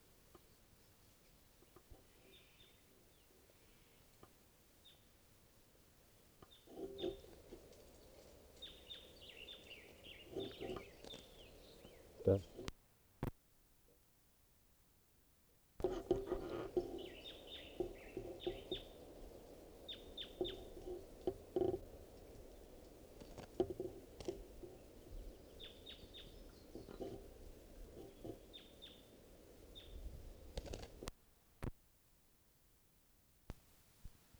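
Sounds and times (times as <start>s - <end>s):
wild bird calling: 6.5s - 12.7s, 15.8s - 31.1s
speech: 12.3s - 12.6s.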